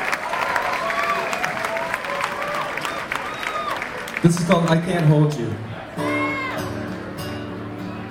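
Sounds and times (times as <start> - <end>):
cheers and whoops: 0.0 - 4.1, 6.0 - 6.8
crowd applauding: 0.0 - 8.0
speech: 4.2 - 5.7.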